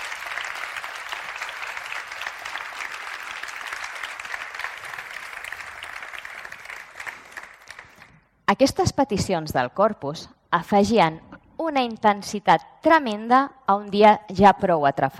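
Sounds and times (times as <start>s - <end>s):
audience applause: 0.0s - 8.2s
speech: 8.5s - 15.1s.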